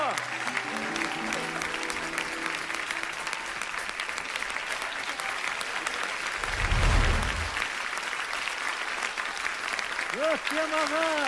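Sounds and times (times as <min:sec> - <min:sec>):
audience applauding after a Kazakh song at a concert: 0:00.0 - 0:11.2
low rumble: 0:06.4 - 0:07.7
speech: 0:10.4 - 0:11.2.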